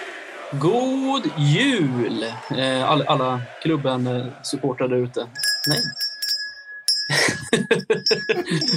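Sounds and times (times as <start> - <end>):
speech: 0.5 - 6.0, 7.1 - 8.7
laughter: 1.0 - 5.3, 7.1 - 8.7
jingle bells ringing: 2.3 - 2.9, 5.3 - 8.7.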